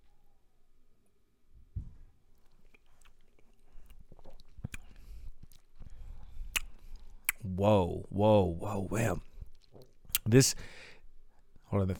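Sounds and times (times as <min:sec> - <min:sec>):
soft low thump: 0:01.7 - 0:02.1
person sipping rye whiskey: 0:02.4 - 0:07.4
wet mouth sounds: 0:02.4 - 0:07.5, 0:09.2 - 0:10.3
speech: 0:07.6 - 0:09.2, 0:10.3 - 0:10.8, 0:11.7 - 0:11.9.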